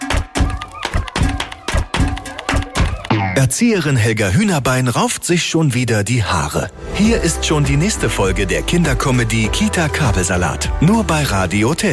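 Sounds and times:
hands clapping along to a rhythm: 0.0s - 3.1s
speech: 3.4s - 11.9s.

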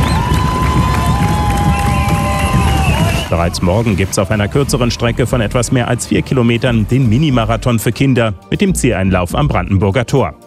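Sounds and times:
whistle-like tone: 0.0s - 3.5s
marathon spectators cheering runners along a race route: 0.0s - 5.5s
speech: 3.3s - 10.4s.

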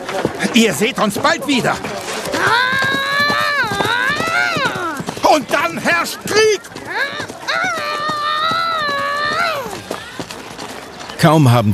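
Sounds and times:
hoofbeats of horses galloping off: 0.0s - 11.2s
speech: 0.2s - 2.9s, 5.3s - 7.2s, 11.2s - 11.7s
loud drawn-out wavering cry: 2.3s - 5.1s, 6.8s - 9.8s.

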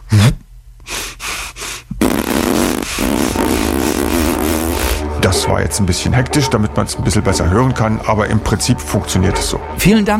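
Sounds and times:
air pushed out of puffed cheeks with a fart-like buzz: 0.1s - 5.1s
speech: 5.4s - 10.1s.

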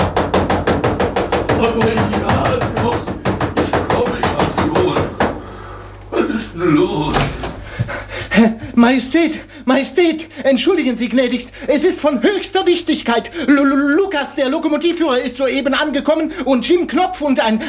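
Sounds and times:
pounding on a door: 0.0s - 5.4s, 7.1s - 8.1s
speech: 1.8s - 2.2s, 8.8s - 17.6s.

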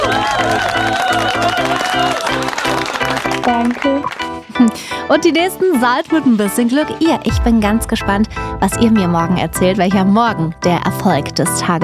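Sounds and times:
crowd cheering with bright whoops: 0.0s - 3.4s
loud continuous applause from a crowd: 0.0s - 4.6s
speech: 3.4s - 11.8s
steady rhythmic pulse: 7.3s - 11.8s.

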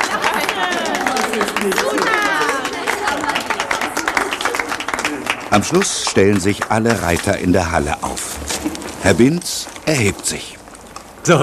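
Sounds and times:
excited voices cheering: 0.0s - 6.3s
dense applause from a group of people: 0.0s - 8.2s
speech: 5.5s - 8.3s, 9.0s - 10.6s, 11.2s - 11.4s.

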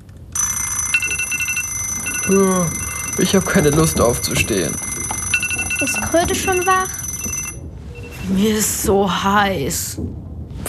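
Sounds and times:
alarm clocks ringing: 0.4s - 8.3s
speech: 2.3s - 4.9s, 5.8s - 7.0s, 8.3s - 10.6s.

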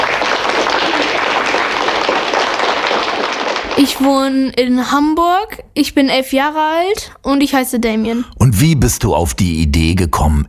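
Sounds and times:
audience applause: 0.0s - 4.1s
speech: 3.8s - 10.4s.

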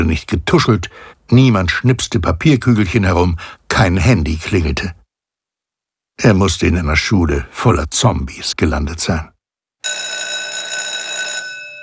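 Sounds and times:
speech: 0.0s - 5.0s, 6.2s - 9.3s
school break bell ringing: 9.8s - 11.8s.

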